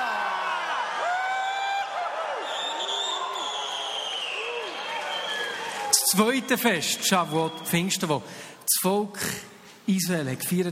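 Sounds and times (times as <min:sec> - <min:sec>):
crowd cheering and whooping: 0:00.0 - 0:06.4
speech: 0:06.1 - 0:10.6.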